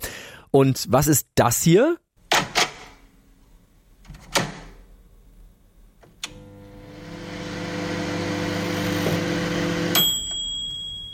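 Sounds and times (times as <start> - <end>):
speech: 0.5 - 2.0
microwave oven operating: 6.3 - 10.4.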